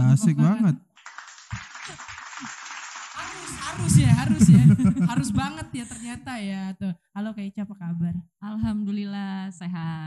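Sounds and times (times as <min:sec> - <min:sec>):
speech: 0:00.2 - 0:00.9, 0:03.7 - 0:10.0
hand clapping applause: 0:01.0 - 0:03.8
laughter: 0:03.7 - 0:06.2.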